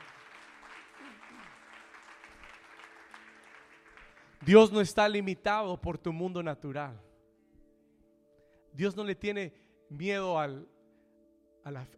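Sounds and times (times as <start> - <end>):
crowd applauding: 0.0 - 4.9
speech: 4.5 - 7.1, 8.8 - 10.7, 11.6 - 11.9.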